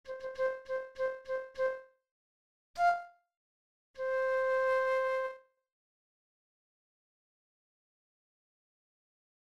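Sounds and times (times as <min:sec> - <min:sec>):
flute playing: 0:00.1 - 0:01.8, 0:02.8 - 0:03.1, 0:04.0 - 0:05.4.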